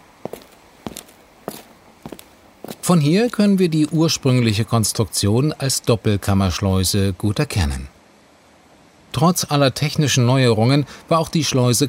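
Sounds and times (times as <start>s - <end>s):
footsteps walking toward the middle chamber of the Kleinmachnow canal lock: 0.0s - 4.2s
speech: 2.9s - 8.0s, 9.2s - 11.8s.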